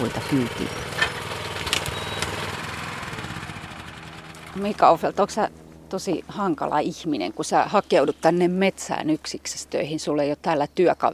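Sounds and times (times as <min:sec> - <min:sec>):
speech: 0:00.0 - 0:00.9, 0:04.6 - 0:11.1
small engine on a horse-drawn forest machine starting and idling: 0:00.0 - 0:06.0.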